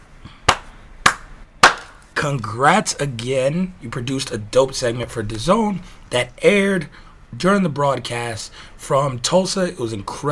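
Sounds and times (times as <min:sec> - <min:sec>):
hand claps: 0:00.4 - 0:02.0
speech: 0:02.2 - 0:10.2.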